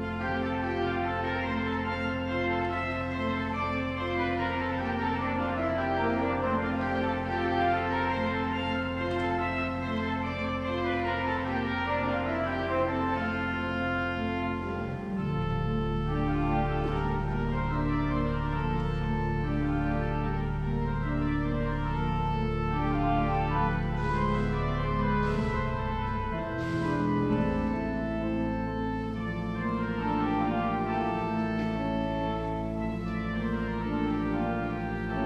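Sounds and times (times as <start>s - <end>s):
short music piece in F major: 0.1s - 35.2s.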